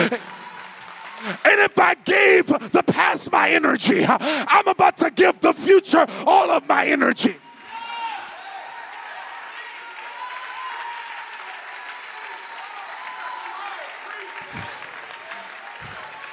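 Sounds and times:
speech: 0:00.0 - 0:00.3, 0:01.2 - 0:07.4
audience clapping: 0:00.0 - 0:02.8, 0:07.4 - 0:16.3.

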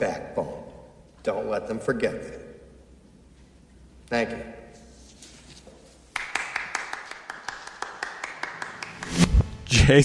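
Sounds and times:
speech: 0:00.0 - 0:00.6, 0:01.2 - 0:02.5, 0:04.1 - 0:04.6, 0:09.0 - 0:10.0
one person clapping after a speech: 0:06.1 - 0:09.2.

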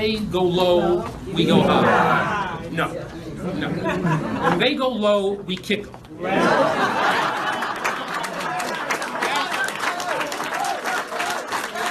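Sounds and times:
speech: 0:00.0 - 0:07.3
laughter: 0:01.4 - 0:02.6, 0:03.6 - 0:04.6, 0:06.2 - 0:11.9
audience applause after a political speech: 0:06.9 - 0:11.9.

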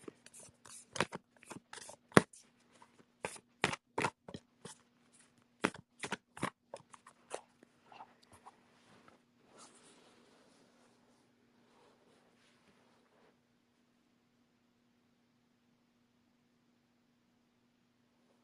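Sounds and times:
deck of oracle cards being shuffled: 0:00.0 - 0:07.5.

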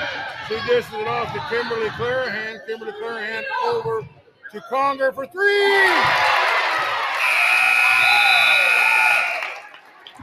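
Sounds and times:
speech: 0:00.5 - 0:06.3
basketball end-of-half buzzer: 0:07.2 - 0:09.4.

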